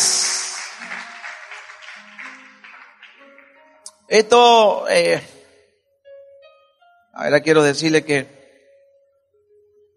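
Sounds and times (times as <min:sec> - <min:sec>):
audience applause: 0:00.0 - 0:03.6
speech: 0:04.1 - 0:05.4, 0:07.2 - 0:08.4.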